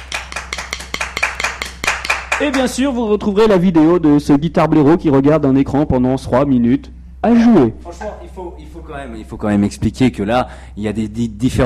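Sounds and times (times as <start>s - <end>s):
few people clapping: 0.0s - 2.8s
speech: 2.4s - 11.6s.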